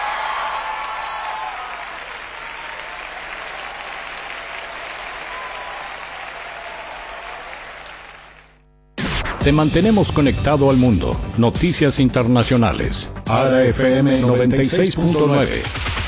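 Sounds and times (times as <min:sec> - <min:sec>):
audience applause at a concert: 0:00.0 - 0:08.6
speech: 0:09.4 - 0:15.9.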